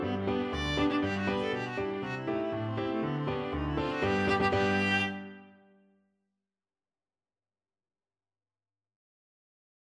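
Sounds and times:
viola playing a polka: 0.0s - 5.8s.

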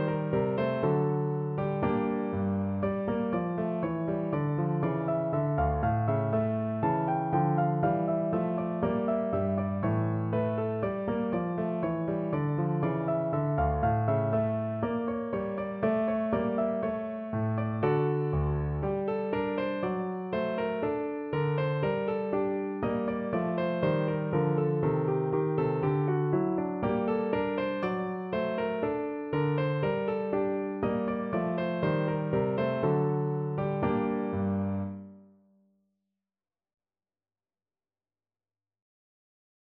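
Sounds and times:
baroque gavotte on piano: 0.0s - 35.3s.

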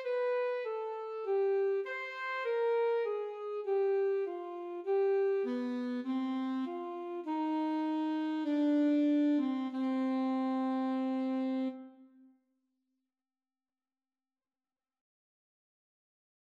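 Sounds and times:
alto saxophone duet: 0.0s - 12.3s.

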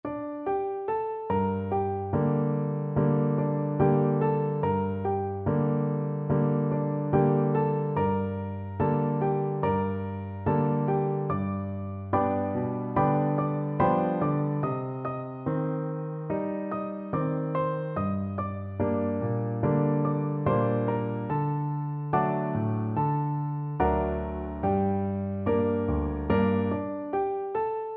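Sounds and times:
piano duet: 0.0s - 27.9s.

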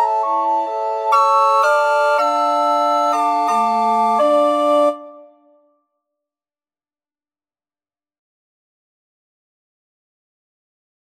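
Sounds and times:
recorder ensemble: 0.0s - 5.4s.

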